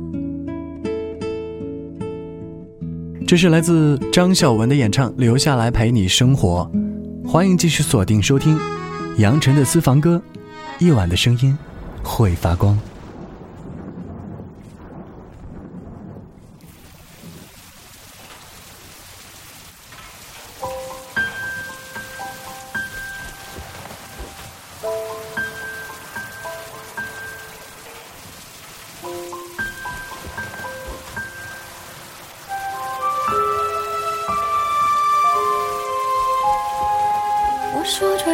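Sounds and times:
soft melodic music: 0.0 - 11.4, 20.5 - 38.3
speech: 3.3 - 12.9
rain pattering: 9.7 - 38.3.

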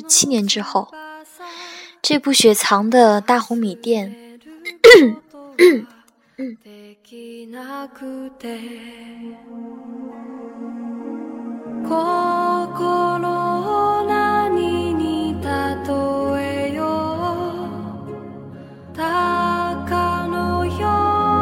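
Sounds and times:
speech: 0.0 - 1.0, 2.1 - 4.2, 4.9 - 10.0, 11.8 - 13.3
person coughing: 4.7 - 6.6
soft instrumental music: 7.8 - 21.4.

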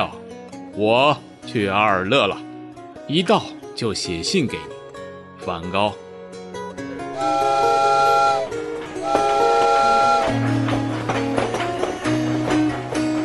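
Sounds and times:
speech: 0.8 - 2.5, 3.1 - 4.8, 5.4 - 6.0
steam train whistle: 7.2 - 10.5
train rumbling along at speed: 8.3 - 13.2.

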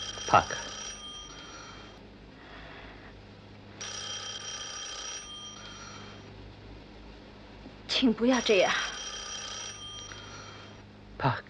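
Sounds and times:
telephone ringing: 0.0 - 2.0, 3.8 - 6.2, 8.3 - 10.8
low steady hum: 0.0 - 11.4
speech: 0.3 - 0.7, 8.0 - 8.9, 11.2 - 11.4.

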